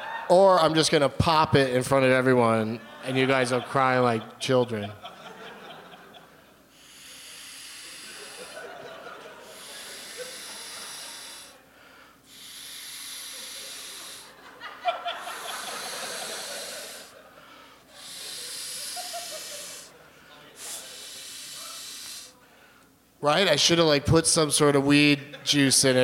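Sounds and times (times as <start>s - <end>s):
speech: 0.3s - 5.1s, 23.3s - 26.0s
laughter: 2.6s - 6.7s, 7.8s - 11.5s, 13.3s - 21.1s, 25.1s - 26.0s
ball being inflated with air: 6.7s - 11.6s, 12.2s - 14.4s, 15.0s - 17.2s, 17.9s - 20.0s, 20.6s - 22.4s.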